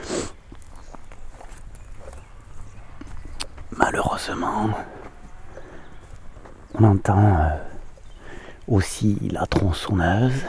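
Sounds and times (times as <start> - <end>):
two deer bounding through undergrowth: 0.0 - 10.4
speech: 3.8 - 5.0, 6.8 - 7.7, 8.7 - 10.4.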